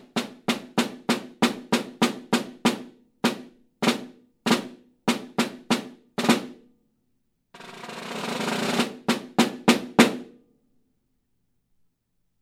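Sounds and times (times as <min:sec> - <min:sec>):
snare drum: 0:00.0 - 0:06.6, 0:07.6 - 0:10.3.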